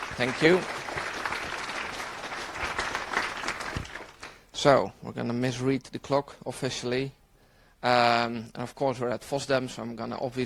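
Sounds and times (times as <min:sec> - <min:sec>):
crowd audience applause: 0:00.0 - 0:04.4
speech: 0:00.2 - 0:00.8, 0:04.6 - 0:07.2, 0:07.8 - 0:10.4.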